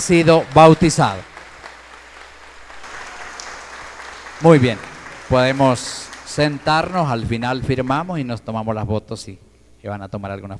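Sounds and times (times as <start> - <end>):
speech: 0.0 - 1.3, 4.4 - 10.5
audience clapping: 0.0 - 8.2.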